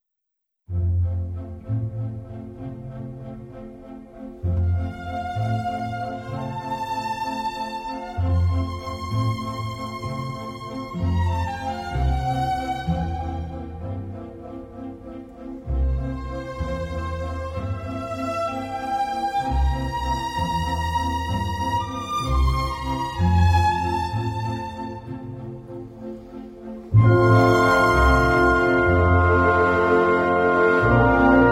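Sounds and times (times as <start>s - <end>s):
piano concerto: 4.3s - 31.4s.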